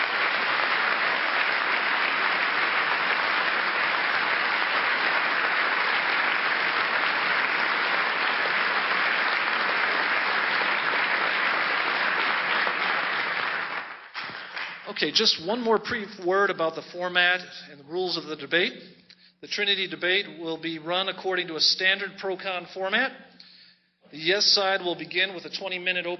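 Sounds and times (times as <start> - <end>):
audience applause welcoming a debate speaker: 0.0 - 15.0
speech: 15.0 - 23.3, 24.1 - 26.1.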